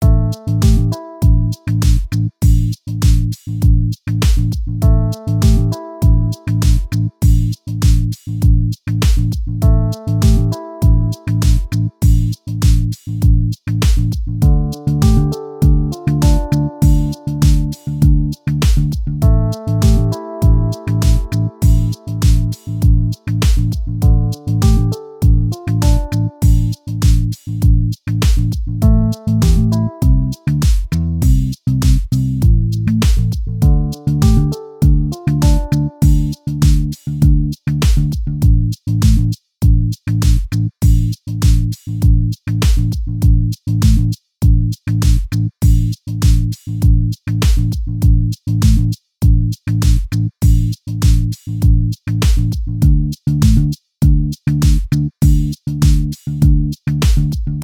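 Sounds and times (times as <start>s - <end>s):
piano in a background loop: 0.0s - 2.1s, 4.8s - 8.0s, 9.6s - 12.9s, 14.4s - 27.3s, 28.8s - 32.0s, 32.9s - 36.8s
bass in a background loop: 0.0s - 57.6s
drums in a background loop: 0.5s - 57.6s.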